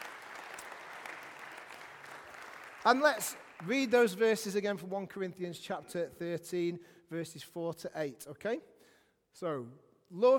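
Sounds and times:
audience applause: 0.0 - 4.2
speech: 2.8 - 8.7, 9.3 - 10.3.

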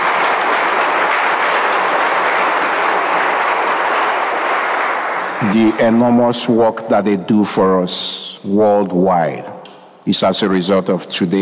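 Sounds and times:
audience applause: 0.0 - 6.3
speech: 5.4 - 11.4.

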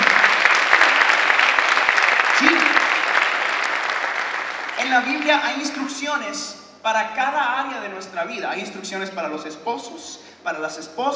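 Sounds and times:
audience applause: 0.0 - 6.0
speech: 5.3 - 11.1.

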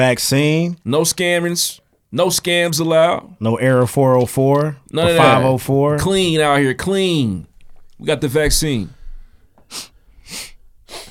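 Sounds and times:
speech: 0.0 - 9.0, 9.7 - 10.5
nose sniffs: 9.7 - 11.0.

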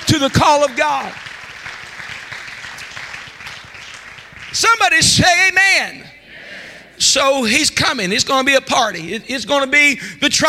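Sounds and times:
audience clapping hands: 0.0 - 5.1
speech: 0.1 - 1.3, 4.5 - 6.1, 7.0 - 10.4.

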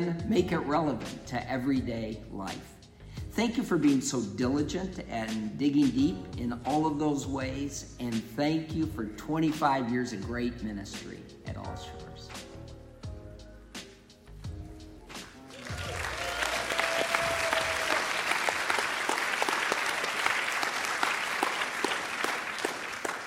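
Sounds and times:
speech: 0.0 - 2.8, 3.4 - 12.4
audience applause: 15.4 - 23.2.

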